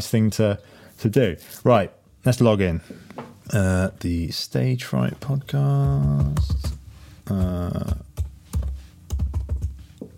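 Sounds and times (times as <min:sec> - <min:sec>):
speech: 0:00.0 - 0:08.1
typing on a computer keyboard: 0:07.4 - 0:10.1.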